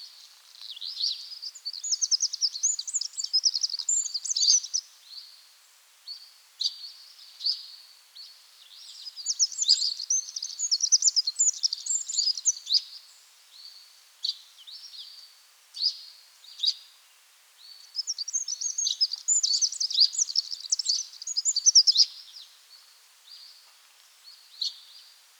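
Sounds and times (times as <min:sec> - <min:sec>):
faint background hiss: 0:00.0 - 0:25.3
Eurasian wren singing: 0:01.4 - 0:04.8, 0:09.2 - 0:12.8, 0:18.0 - 0:22.1.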